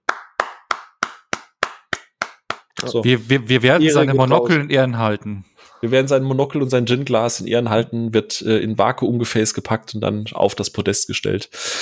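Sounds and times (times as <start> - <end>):
one person clapping hands: 0.0 - 2.9
speech: 2.8 - 11.8.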